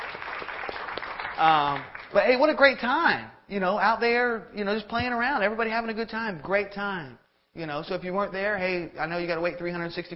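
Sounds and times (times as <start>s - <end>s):
audience applause: 0.0s - 2.1s
speech: 1.4s - 10.1s.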